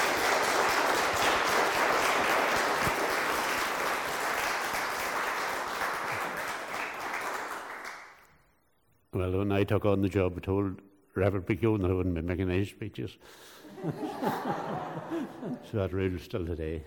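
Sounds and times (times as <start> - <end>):
round of applause: 0.0 - 8.3
speech: 9.2 - 16.8
laughter: 13.7 - 15.8.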